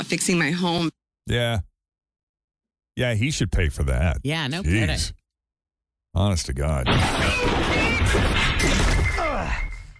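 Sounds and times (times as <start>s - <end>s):
speech: 0.1s - 1.7s, 3.0s - 5.2s, 6.1s - 9.7s
man falling through a ceiling sound effect: 6.9s - 9.8s.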